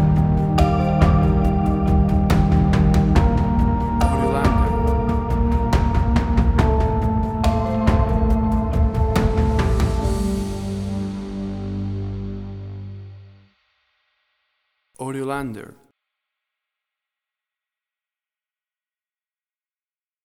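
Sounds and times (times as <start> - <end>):
ambient synth pad: 0.0 - 13.5.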